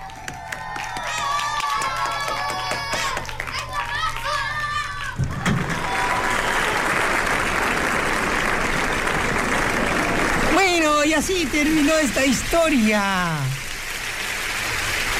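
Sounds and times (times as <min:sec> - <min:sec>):
children's excited chatter and cheers: 0:00.0 - 0:07.1
applause: 0:00.0 - 0:15.1
speech: 0:11.2 - 0:13.6.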